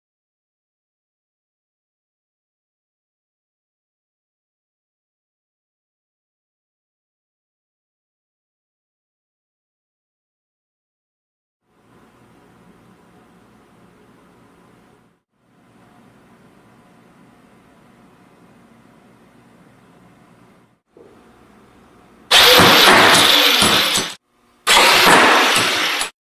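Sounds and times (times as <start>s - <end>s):
robot flipper test: 22.3s - 26.1s.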